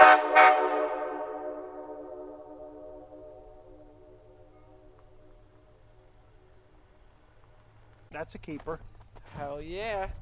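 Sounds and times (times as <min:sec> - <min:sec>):
horns: 0:00.0 - 0:06.8.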